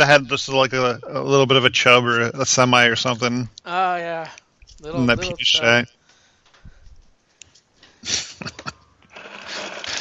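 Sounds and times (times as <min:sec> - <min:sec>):
speech: 0:00.0 - 0:03.8, 0:04.8 - 0:06.0, 0:08.0 - 0:08.7
ice maker running: 0:09.2 - 0:09.9.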